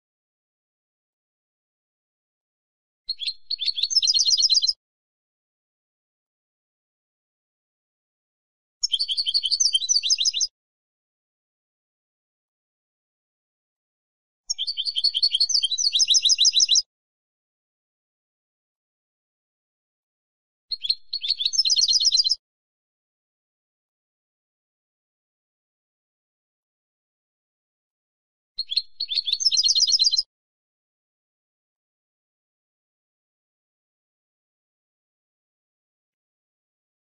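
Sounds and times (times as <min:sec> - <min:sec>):
European goldfinch twittering song: 0:03.1 - 0:04.8, 0:08.8 - 0:10.5, 0:14.5 - 0:16.8, 0:20.7 - 0:22.4, 0:28.6 - 0:30.3.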